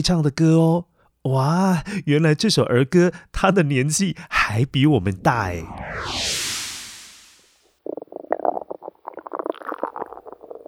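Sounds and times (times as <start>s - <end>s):
speech: 0.0s - 6.3s
stomach rumbling from hunger: 7.8s - 10.6s.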